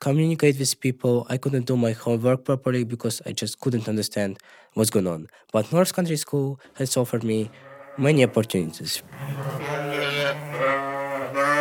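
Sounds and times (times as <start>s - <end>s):
speech: 0.0s - 10.8s
sheep bleating inside the North Country School barn: 7.5s - 11.5s.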